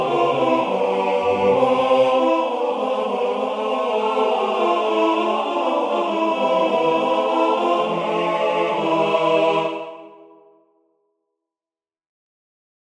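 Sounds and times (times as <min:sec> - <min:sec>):
choral vocal trio singing: 0:00.0 - 0:10.3.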